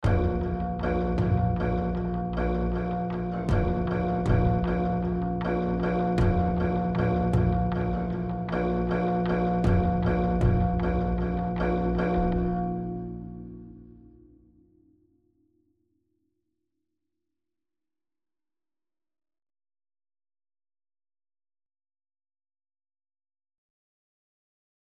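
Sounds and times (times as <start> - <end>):
rage combat music: 0.0 - 14.0.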